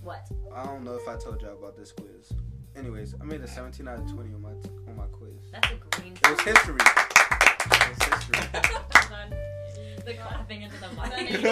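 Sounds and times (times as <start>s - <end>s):
speech: 0.1s - 11.5s
hands clapping into the microphone: 5.6s - 9.3s
laughter: 7.7s - 9.2s, 10.6s - 11.5s.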